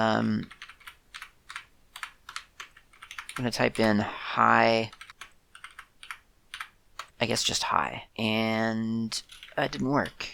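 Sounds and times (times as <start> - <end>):
speech: 0.0 - 0.6, 3.4 - 5.0, 7.2 - 10.3
typing code on a computer keyboard: 0.4 - 4.1, 4.8 - 7.2, 9.2 - 10.2.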